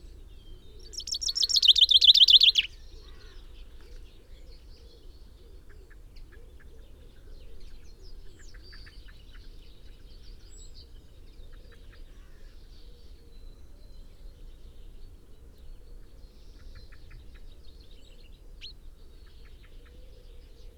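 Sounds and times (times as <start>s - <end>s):
common chaffinch Fringilla coelebs song: 0.8s - 2.8s.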